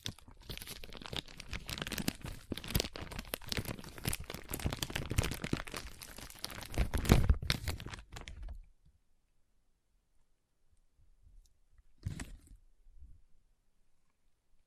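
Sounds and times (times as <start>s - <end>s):
foam being squeezed and rubbed crinkling and crunching: 0.0s - 8.4s.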